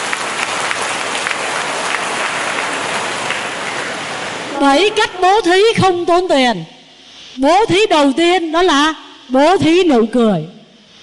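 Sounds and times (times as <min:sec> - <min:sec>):
crowd applause: 0:00.0 - 0:04.6
speech: 0:04.6 - 0:06.8, 0:07.4 - 0:10.6.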